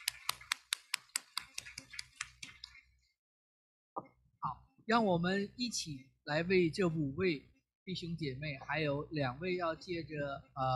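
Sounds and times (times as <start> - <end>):
applause: 0.0 - 2.5
speech: 4.4 - 10.7.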